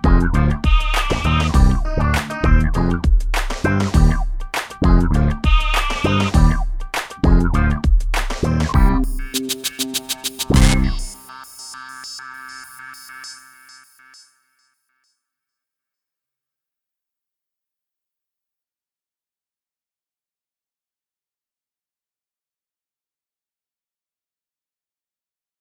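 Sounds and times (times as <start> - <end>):
instrumental music: 0.0 - 14.4.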